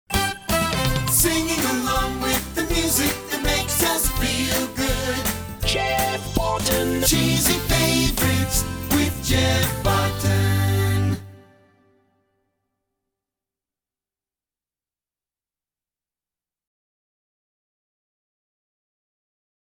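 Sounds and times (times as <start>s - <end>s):
song: 0.1s - 12.0s.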